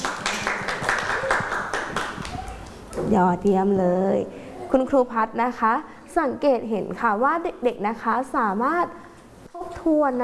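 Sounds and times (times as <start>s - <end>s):
children clapping: 0.0s - 2.8s
speech: 3.1s - 9.0s, 9.8s - 10.2s.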